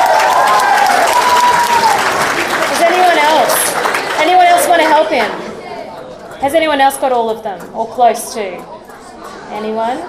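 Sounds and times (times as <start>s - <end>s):
audience applause for a volunteer: 0.0s - 5.5s
speech: 6.4s - 8.8s, 9.5s - 10.0s.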